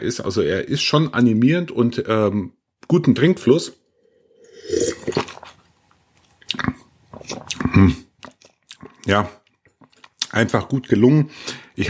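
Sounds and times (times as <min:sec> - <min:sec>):
speech: 0:00.0 - 0:03.8, 0:07.3 - 0:08.0, 0:09.0 - 0:09.4, 0:10.3 - 0:11.8
person sipping and swallowing wine: 0:03.9 - 0:09.1.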